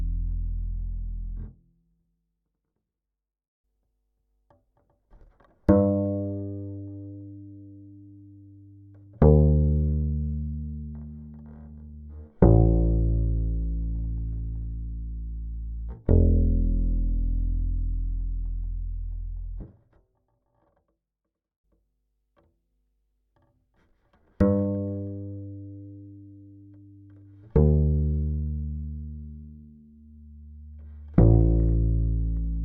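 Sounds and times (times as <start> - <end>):
Phil Jones Kontrabass amplifier: 0.0 - 1.7, 5.3 - 19.8, 24.4 - 32.6.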